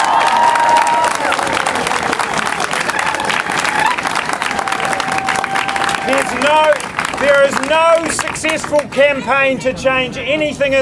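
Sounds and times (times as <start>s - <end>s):
crowd cheering and whoops: 0.0s - 6.8s
crowd applause: 0.0s - 9.2s
speech: 7.2s - 10.7s.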